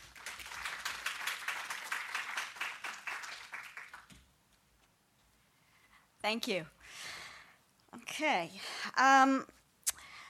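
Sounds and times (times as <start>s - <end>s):
audience applauding a speaker's introduction at an art lecture: 0.0s - 4.3s
speech: 6.2s - 7.2s, 8.2s - 9.6s.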